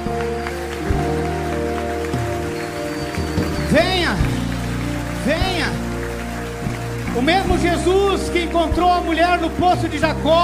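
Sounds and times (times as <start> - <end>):
audience applauding: 0.0 - 10.4
speech: 3.7 - 4.2, 7.2 - 10.4.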